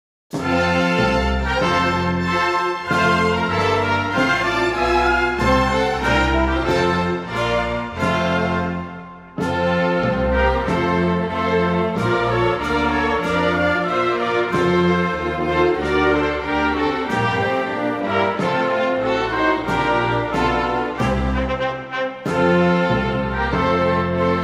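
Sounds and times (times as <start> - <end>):
instrumental anthem: 0.3 - 24.4.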